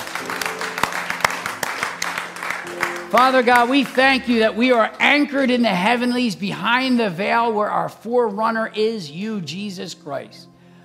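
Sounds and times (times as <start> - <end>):
crowd noise: 0.0 - 4.6
congregation clapping during a church service: 0.0 - 5.8
speech: 3.1 - 10.5.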